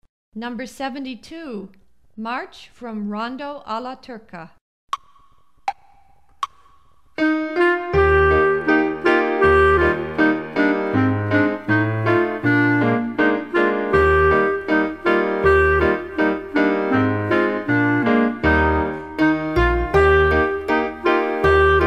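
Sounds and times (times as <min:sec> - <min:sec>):
march music: 0:07.2 - 0:21.8.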